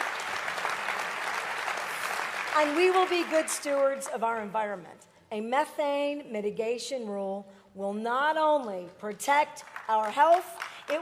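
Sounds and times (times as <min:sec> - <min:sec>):
audience applause: 0:00.0 - 0:03.7
speech: 0:02.6 - 0:11.0.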